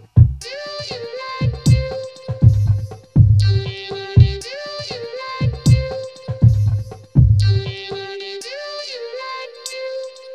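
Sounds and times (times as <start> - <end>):
noise pollution music: 0.0 - 7.8.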